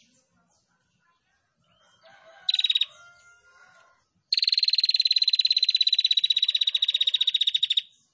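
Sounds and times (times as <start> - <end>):
female prinia singing rattling trills: 2.4 - 3.0, 4.3 - 8.1.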